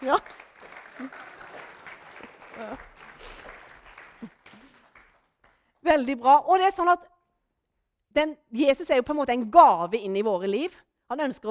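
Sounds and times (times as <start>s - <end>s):
speech: 0.0s - 0.4s, 1.0s - 1.3s, 5.9s - 7.1s, 8.2s - 11.4s
audience applause: 0.0s - 5.6s.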